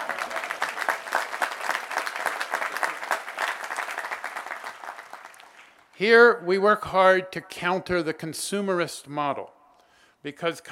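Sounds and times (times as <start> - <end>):
audience applause: 0.0 - 5.8
speech: 6.0 - 9.6, 10.2 - 10.7.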